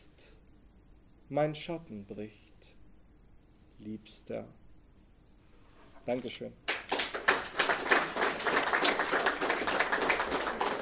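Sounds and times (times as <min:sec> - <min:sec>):
speech: 0:01.3 - 0:02.8, 0:03.8 - 0:04.6, 0:06.0 - 0:06.6
audience applause after a song: 0:06.7 - 0:10.7.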